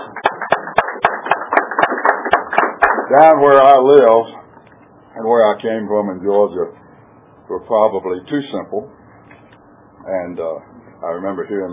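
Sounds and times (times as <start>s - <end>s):
audience applause: 0.0s - 3.2s
sharp evenly spaced claps at a quick beat: 0.0s - 3.5s
speech: 3.1s - 4.4s, 5.2s - 6.8s, 7.5s - 9.0s, 10.1s - 11.7s.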